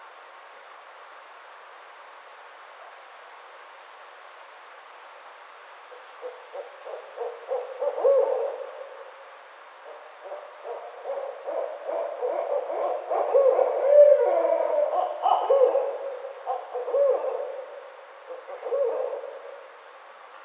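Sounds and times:
faint background hiss: 0:00.0 - 0:20.4
barred owl hooting: 0:06.2 - 0:09.0, 0:09.8 - 0:19.8.

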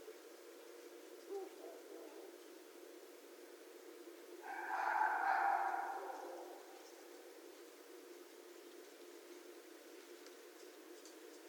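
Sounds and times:
low hiss: 0:00.0 - 0:11.4
red fox uttering a rough hoarse drawn-out scream: 0:04.4 - 0:06.8.

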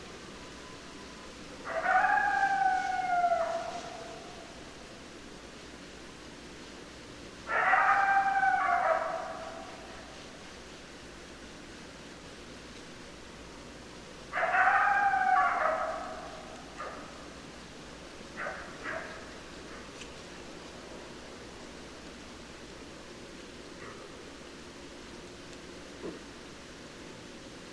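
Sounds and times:
background hiss: 0:00.0 - 0:27.7
coyote howling and yipping: 0:01.6 - 0:04.6, 0:07.5 - 0:10.1, 0:14.3 - 0:17.2.

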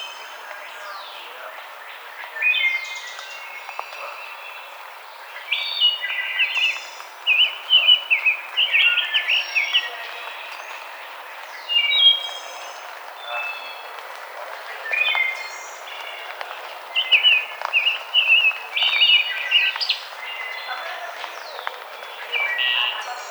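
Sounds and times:
other birds calling: 0:00.3 - 0:23.2.

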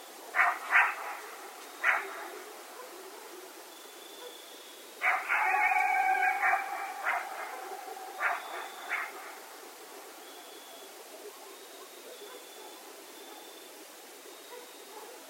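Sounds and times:
several coyotes howling at night: 0:00.3 - 0:03.6, 0:05.0 - 0:13.5.

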